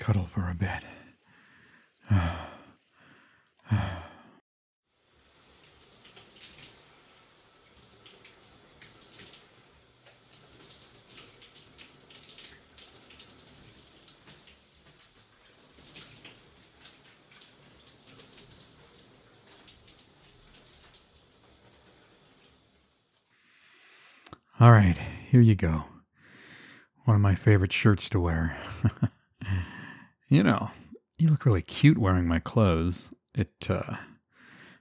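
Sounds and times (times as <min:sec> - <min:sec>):
speech: 0:00.0 - 0:01.0, 0:24.6 - 0:25.9, 0:27.1 - 0:29.2, 0:30.3 - 0:34.1
shower water running: 0:00.0 - 0:04.2, 0:04.9 - 0:23.3.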